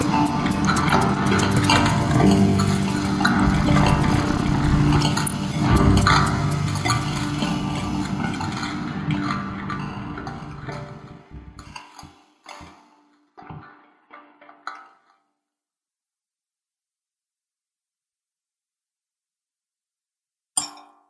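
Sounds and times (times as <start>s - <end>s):
rushing noise: 0.0s - 8.5s.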